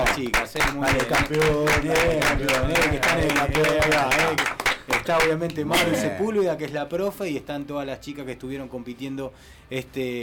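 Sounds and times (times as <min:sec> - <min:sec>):
small group applauding: 0:00.0 - 0:06.1
speech: 0:00.2 - 0:10.2.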